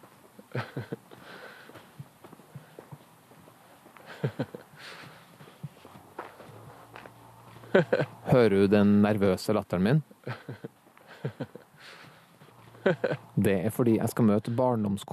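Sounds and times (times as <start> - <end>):
footsteps walking over a hard surface: 0.0 - 8.4
laughter: 0.4 - 1.1, 4.0 - 5.8, 7.6 - 8.4, 10.2 - 13.4
speech: 0.5 - 1.1, 7.8 - 10.7, 12.9 - 15.1.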